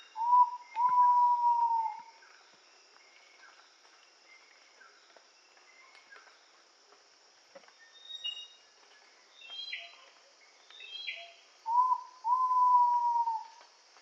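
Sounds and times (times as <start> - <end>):
Ivory-breasted pitta Pitta maxima whistling call in Indonesia: 0.2 - 2.0, 10.9 - 13.5.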